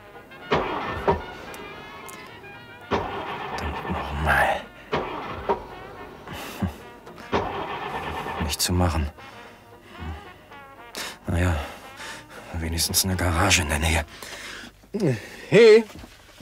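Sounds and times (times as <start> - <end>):
stalled Studebaker car engine cranking and failing to start on a small incline: 0.0 - 10.3
speech: 8.7 - 9.3, 12.8 - 14.3, 14.9 - 16.1.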